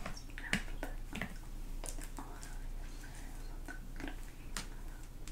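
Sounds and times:
inaudible whispering: 0.1 - 1.2, 2.0 - 5.2.

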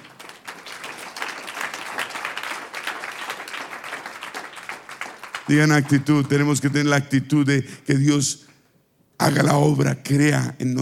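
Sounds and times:
audience applauding: 0.0 - 6.6
speech: 5.5 - 8.5, 9.2 - 10.7.

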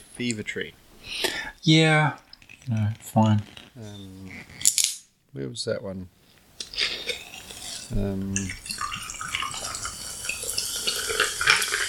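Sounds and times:
speech: 0.2 - 4.7, 5.3 - 6.2, 7.9 - 8.6
ice cubes clinking against a glass: 7.1 - 11.8.

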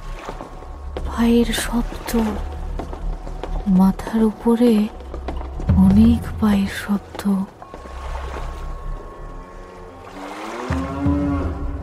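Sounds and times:
speech: 1.2 - 2.5, 3.7 - 5.0, 5.8 - 7.6
cattle lowing in a farm scene: 9.2 - 11.8.

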